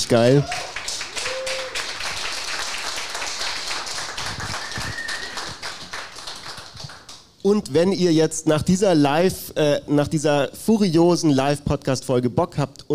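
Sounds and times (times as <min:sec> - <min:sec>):
speech: 0:00.0 - 0:00.7, 0:07.4 - 0:12.9
crowd clapping: 0:00.5 - 0:07.4
faint whistle: 0:04.5 - 0:05.6.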